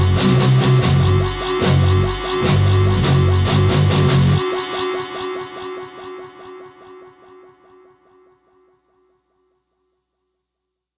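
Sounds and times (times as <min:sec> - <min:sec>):
8-string guitar through infinite delay, Satchurator and ring modulator into Roland JC120 amplifiers: 0:00.0 - 0:09.2.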